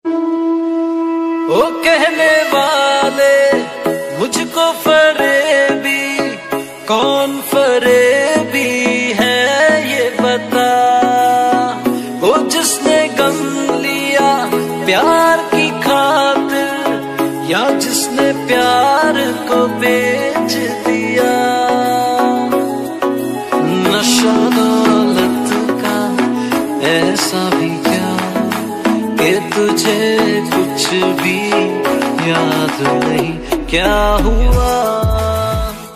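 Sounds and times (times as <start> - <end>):
sad song ringtone: 0.0 - 35.9.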